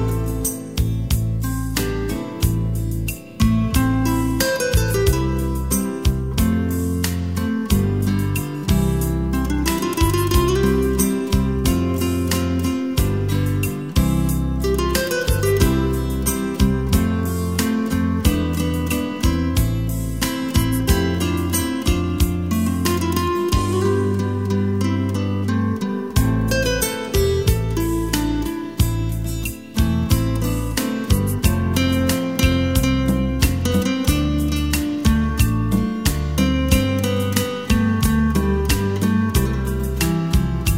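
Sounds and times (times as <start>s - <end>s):
romantic guitar music: 0.0s - 40.7s.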